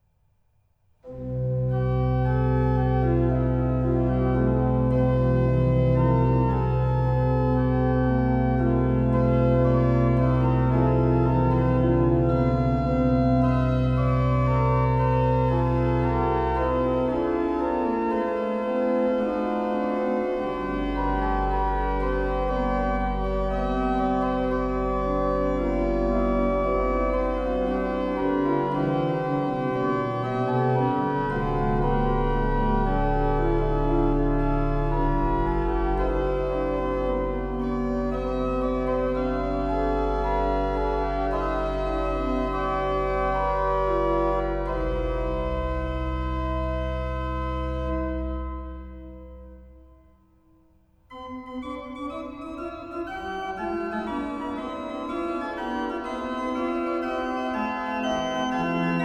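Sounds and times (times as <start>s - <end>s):
organ prelude and fugue from Bohemia: 1.0s - 50.1s, 51.1s - 59.0s.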